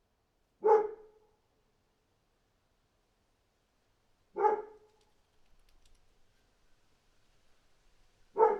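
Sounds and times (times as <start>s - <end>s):
dog barking: 0.6s - 1.2s, 4.4s - 4.8s, 8.4s - 8.5s.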